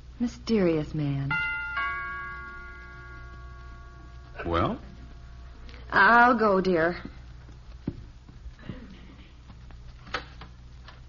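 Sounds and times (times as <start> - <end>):
speech: 0.2 - 1.5, 4.4 - 4.9, 5.9 - 7.2
doorbell chime ringing: 1.3 - 5.5.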